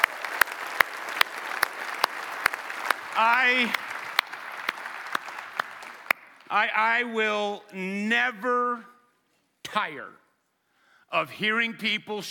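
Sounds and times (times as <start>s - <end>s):
audience applause: 0.0s - 6.5s
speech: 3.2s - 3.9s, 6.5s - 8.9s, 9.7s - 10.2s, 11.1s - 12.2s.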